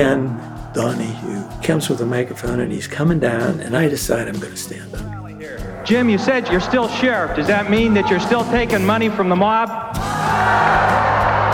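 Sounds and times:
studio audience crowd cheering: 0.0 - 4.2, 5.0 - 11.5
laughter: 0.0 - 9.4
speech: 0.0 - 11.1.

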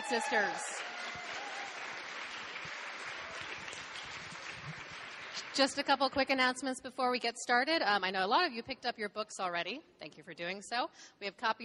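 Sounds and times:
audience applause: 0.0 - 5.6
speech: 0.1 - 1.2, 5.6 - 11.6.

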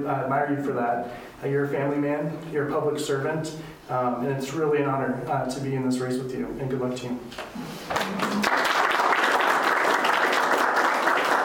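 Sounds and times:
speech: 0.0 - 8.6
crowd applause: 7.9 - 11.4.

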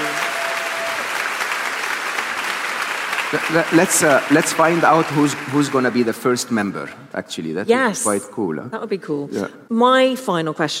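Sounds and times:
audience applause: 0.0 - 6.7
speech: 3.3 - 10.7.

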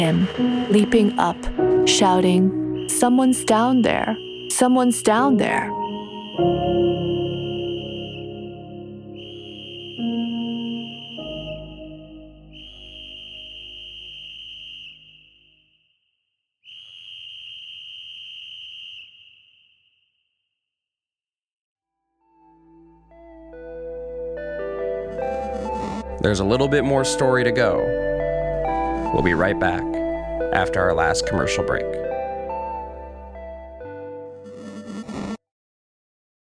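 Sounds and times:
speech: 0.0 - 5.8, 6.4 - 7.0, 26.2 - 28.0, 29.1 - 32.1
music: 0.0 - 14.1, 21.9 - 35.4
whistle blasts: 2.6 - 11.8, 12.5 - 15.7, 16.6 - 19.9.

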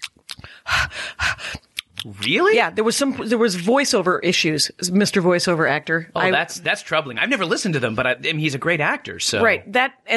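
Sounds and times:
voice imitating heavy breathing: 0.4 - 2.5
speech: 2.0 - 10.1.

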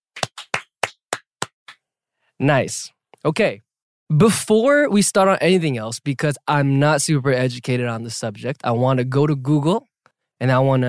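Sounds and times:
clap sound effect: 0.0 - 1.8
speech: 2.4 - 10.8.

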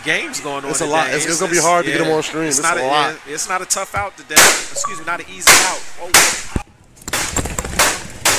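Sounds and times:
speech: 0.0 - 6.7
gunshots in recorded news footage: 5.4 - 8.3.

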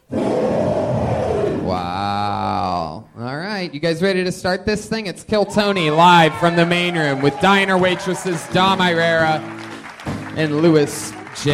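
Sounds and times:
bear roar sound effect: 0.0 - 2.6
speech: 3.6 - 9.6, 10.4 - 11.5.

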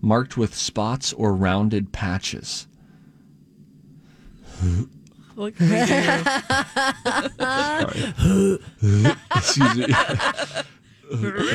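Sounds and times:
speech: 0.0 - 2.7, 4.6 - 11.5
laughter: 5.6 - 11.5
person dry heaving: 7.8 - 8.7.

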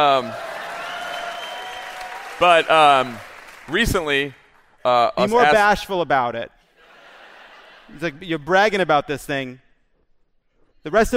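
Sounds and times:
speech: 0.0 - 0.5, 2.4 - 6.6, 7.9 - 9.6, 10.8 - 11.1
audience applause: 0.0 - 4.7
laughter: 6.8 - 8.4.

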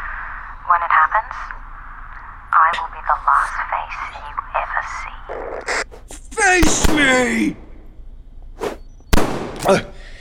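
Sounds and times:
speech: 0.7 - 1.7, 2.7 - 7.6, 9.7 - 9.9
gunshot: 6.6 - 7.5, 9.2 - 9.8.

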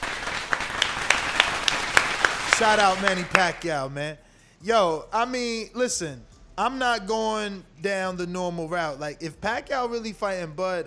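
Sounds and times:
artificial crowd applause from a soundboard: 0.0 - 3.7
speech: 2.6 - 10.8.

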